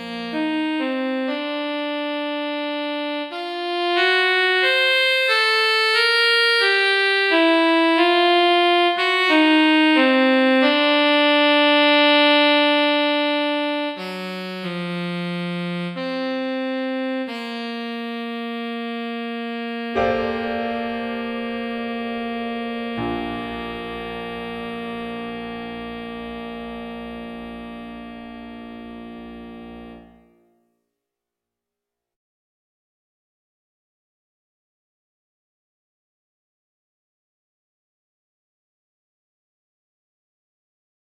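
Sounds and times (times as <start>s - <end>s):
saxophone in a romance piece: 0.0s - 30.4s.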